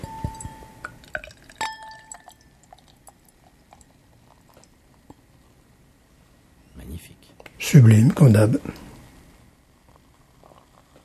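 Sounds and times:
glass clinking with a bright glassy ring: 0:00.0 - 0:03.2
drink pouring into a glass: 0:00.2 - 0:04.8
fizzing bubbling trickle of a drink: 0:00.3 - 0:05.1
speech: 0:07.0 - 0:08.8.

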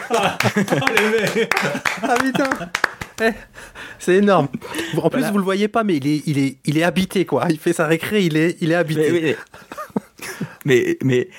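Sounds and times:
hand clapping: 0:00.0 - 0:03.3
laughter: 0:00.0 - 0:03.4, 0:08.9 - 0:11.3
speech: 0:00.1 - 0:11.3.

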